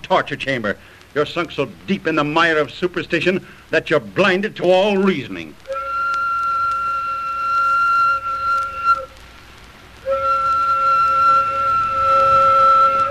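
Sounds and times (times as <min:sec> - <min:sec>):
speech: 0:00.1 - 0:05.7
steam sawmill whistle blasts: 0:05.7 - 0:09.2, 0:10.0 - 0:13.0.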